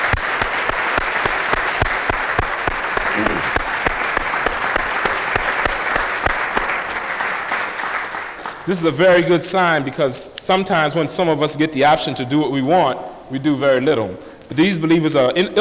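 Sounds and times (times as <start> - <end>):
audience applause: 0.0 - 9.4
speech: 8.7 - 15.5.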